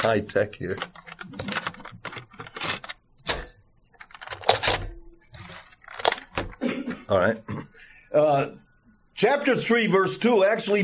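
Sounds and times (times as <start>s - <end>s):
speech: 0.0s - 1.6s, 7.1s - 7.5s, 8.1s - 8.6s, 9.2s - 10.8s
plastic cassette tape turned over in a recorder: 0.0s - 5.0s, 5.7s - 6.6s.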